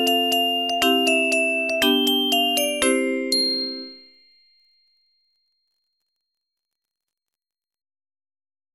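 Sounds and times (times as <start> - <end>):
jingle bell: 0.0 - 5.3.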